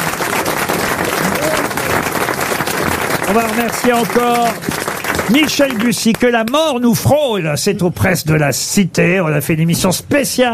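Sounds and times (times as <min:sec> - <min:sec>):
audience applause: 0:00.0 - 0:06.6
speech: 0:03.3 - 0:10.5.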